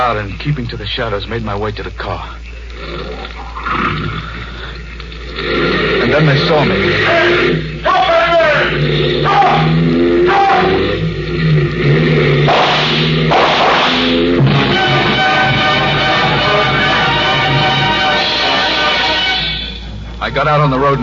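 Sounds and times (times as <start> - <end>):
speech: 0.1 - 4.6, 5.4 - 8.0, 20.2 - 21.0
motorcycles roaring in pursuit: 5.0 - 21.0.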